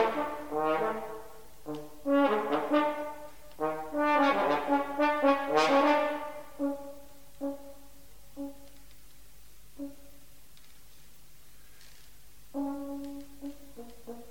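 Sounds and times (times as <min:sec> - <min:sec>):
horn: 0:00.0 - 0:09.0, 0:09.7 - 0:10.3, 0:12.5 - 0:14.3.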